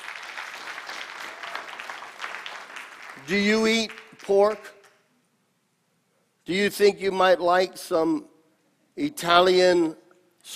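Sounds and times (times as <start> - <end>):
studio audience applause welcoming guests: 0.0 - 5.0
speech: 3.2 - 4.8, 6.5 - 8.3, 9.0 - 10.5.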